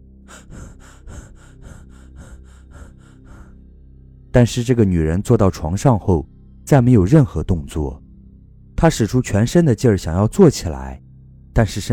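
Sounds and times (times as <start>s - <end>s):
man breathing rapidly in fright during sleep paralysis: 0.3s - 3.8s
speech: 4.4s - 8.0s, 8.8s - 11.0s, 11.6s - 11.9s.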